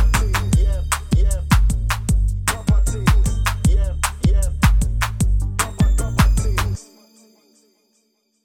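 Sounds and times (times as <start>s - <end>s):
dancehall funk music: 0.0s - 7.6s.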